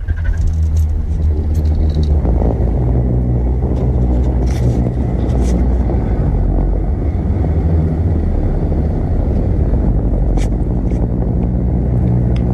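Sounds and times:
booming roar of Namibian singing sand dunes: 0.1s - 12.5s.

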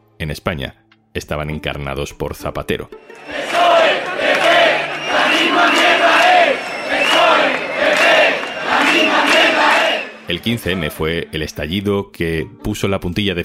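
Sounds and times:
speech: 0.2s - 13.4s
protest crowd chanting in a square: 3.0s - 11.5s.

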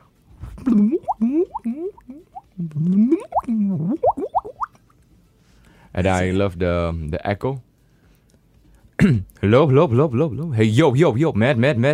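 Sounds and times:
speech: 0.6s - 3.0s, 6.0s - 7.7s, 9.0s - 11.9s
hollow water plops: 0.7s - 4.8s.

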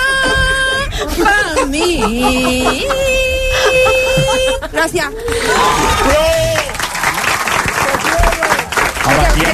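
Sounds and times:
laughter: 0.2s - 6.7s
speech: 1.1s - 3.4s, 4.8s - 6.4s
audience applause: 5.3s - 9.5s.

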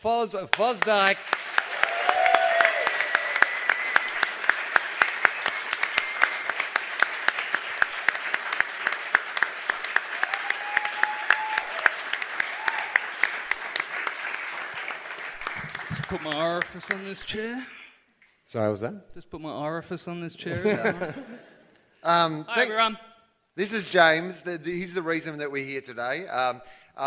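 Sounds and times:
speech: 0.0s - 1.5s, 16.3s - 17.8s, 18.5s - 21.4s, 22.0s - 27.0s
live audience applause: 0.5s - 17.3s
laughter: 20.5s - 21.7s.

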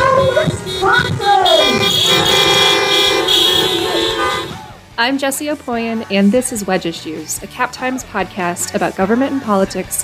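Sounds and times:
many car horns honking as applause at a drive-in rally: 0.0s - 4.7s
speech: 5.0s - 10.0s.

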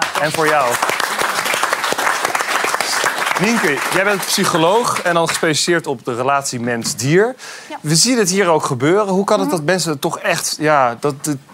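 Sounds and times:
studio audience applause: 0.0s - 5.7s
speech: 0.2s - 0.9s, 3.4s - 11.5s.

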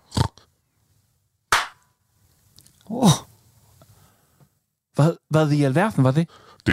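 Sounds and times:
hand clap: 1.5s - 1.8s
speech: 2.9s - 3.3s, 5.0s - 6.7s.

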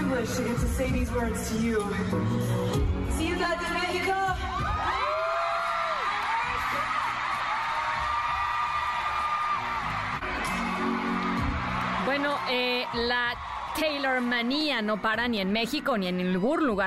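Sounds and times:
speech: 0.2s - 5.0s, 12.1s - 16.8s
huge concert crowd cheering and screaming: 4.3s - 15.8s.

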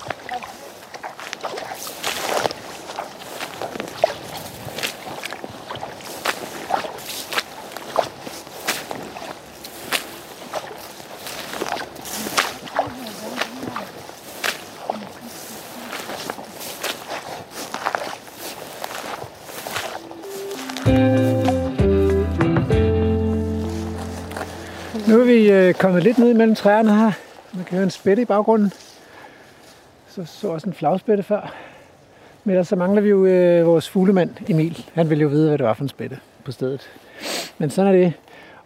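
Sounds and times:
footsteps through wet heath terrain: 0.0s - 30.0s
speech: 25.7s - 28.8s, 30.2s - 31.6s, 32.5s - 38.3s.

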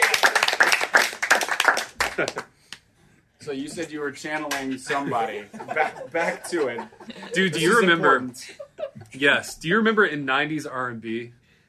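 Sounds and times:
people clapping: 0.0s - 2.8s, 4.3s - 5.2s
speech: 2.2s - 2.5s, 3.4s - 11.4s
laughter: 4.8s - 9.6s.

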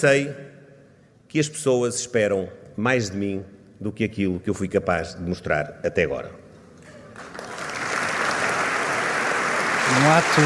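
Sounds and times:
speech: 0.0s - 0.5s, 1.3s - 6.4s, 9.9s - 10.4s
congress audience applause: 7.2s - 10.4s.

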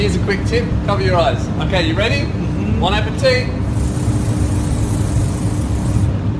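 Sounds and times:
speech: 0.0s - 3.6s
spray tan machine spraying: 3.6s - 6.1s.

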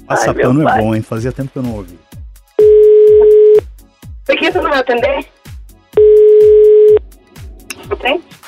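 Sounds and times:
speech: 0.1s - 2.1s, 4.3s - 5.3s, 7.9s - 8.4s
telephone ringback tone as a call is placed: 2.6s - 3.6s, 6.0s - 7.0s.

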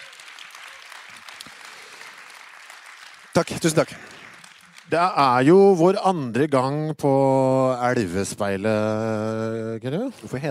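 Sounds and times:
small audience applause: 0.0s - 5.8s
speech: 3.4s - 4.2s, 4.9s - 10.4s.

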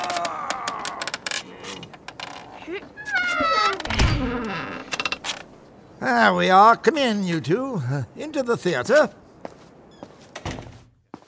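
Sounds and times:
side door being pried open: 3.4s - 5.0s
speech: 6.0s - 9.2s.

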